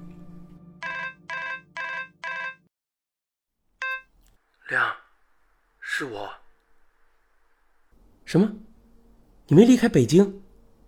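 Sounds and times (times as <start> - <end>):
telephone ringing: 0.8 - 2.7, 3.8 - 4.1
speech: 4.7 - 5.0, 6.0 - 6.4, 8.3 - 8.7, 9.5 - 10.4.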